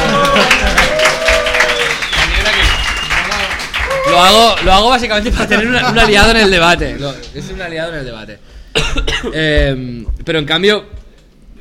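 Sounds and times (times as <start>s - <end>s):
laughter: 0.0s - 1.4s, 5.1s - 7.6s
audience applause: 0.0s - 5.3s
speech: 4.2s - 11.0s.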